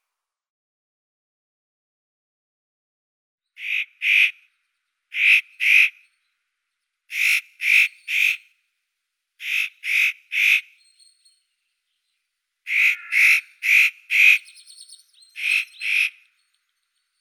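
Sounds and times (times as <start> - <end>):
nutcracker Nucifraga caryocatactes calling: 3.6 - 4.4, 5.1 - 6.0, 7.1 - 8.5, 9.4 - 11.4, 12.7 - 16.4.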